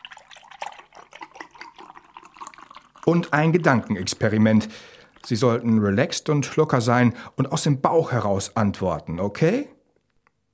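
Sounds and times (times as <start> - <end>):
glass of milk being poured: 0.0 - 6.0
speech: 3.0 - 9.7.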